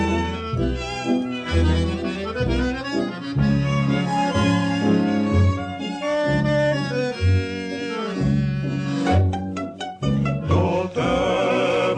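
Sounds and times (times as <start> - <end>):
Ukrainian tango music: 0.0 - 11.9.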